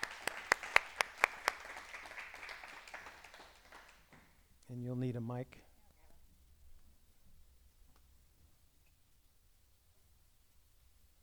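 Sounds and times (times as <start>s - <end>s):
audience applause welcoming a speaker: 0.0s - 4.4s
speech: 4.7s - 5.7s.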